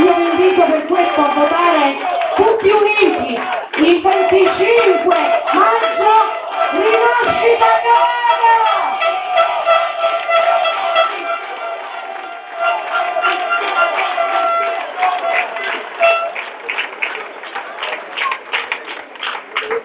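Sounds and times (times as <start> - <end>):
audience applause in a town square: 0.0 - 19.8.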